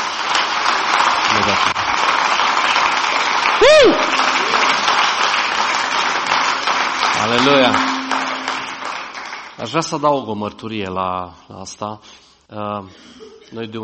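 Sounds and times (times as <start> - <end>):
audience clapping: 0.0 - 9.9
whoop or whistle: 3.6 - 4.8
speech: 7.2 - 7.9, 9.6 - 13.8.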